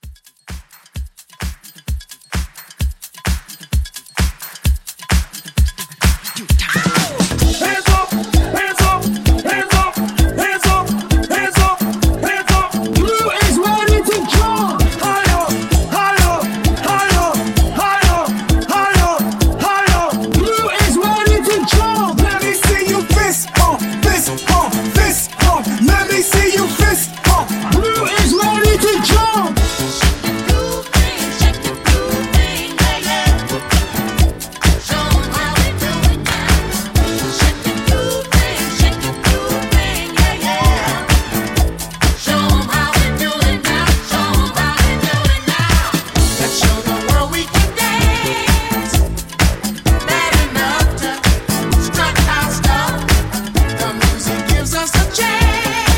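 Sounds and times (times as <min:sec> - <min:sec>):
1970s disco drums: 0:00.0 - 0:55.9.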